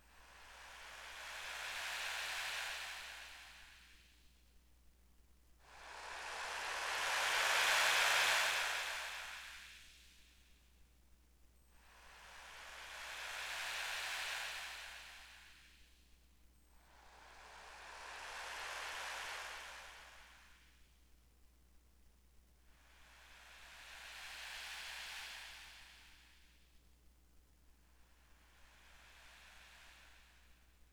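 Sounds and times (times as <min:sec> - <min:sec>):
waves: 0:00.4 - 0:03.7, 0:05.8 - 0:09.7, 0:11.9 - 0:15.6, 0:16.9 - 0:20.6, 0:22.9 - 0:26.2, 0:28.6 - 0:30.2.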